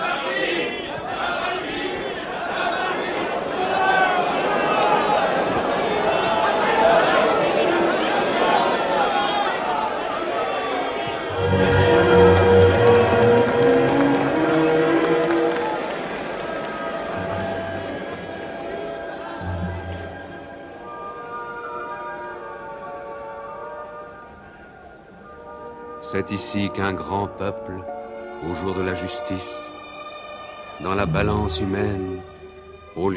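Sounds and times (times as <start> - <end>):
large crowd cheering and shouting: 0.0 - 20.5
speech: 26.2 - 29.8, 30.8 - 32.3, 33.0 - 33.1.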